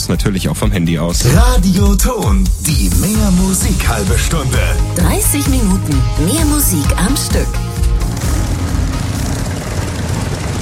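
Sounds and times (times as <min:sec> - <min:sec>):
speech: 0:00.1 - 0:07.7
motorcycle engine roaring: 0:06.3 - 0:10.6.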